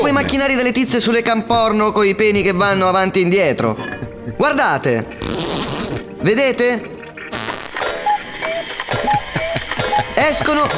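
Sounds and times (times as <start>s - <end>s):
speech: 0.1s - 5.4s, 6.2s - 7.5s, 10.2s - 10.7s
old clock ticking mechanism: 8.4s - 10.7s.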